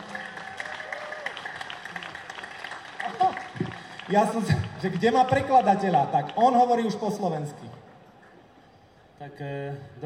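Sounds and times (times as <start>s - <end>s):
audience applause: 0.0s - 6.6s
speech: 4.1s - 7.7s, 9.3s - 10.0s.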